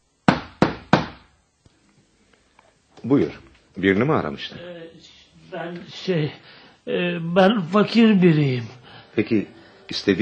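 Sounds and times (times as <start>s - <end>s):
knocking on a door: 0.3s - 1.2s
speech: 3.0s - 10.2s.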